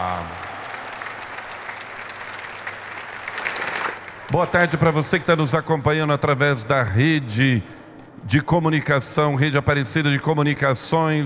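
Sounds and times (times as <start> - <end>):
audience applause: 0.0 - 4.7
speech: 4.3 - 11.2.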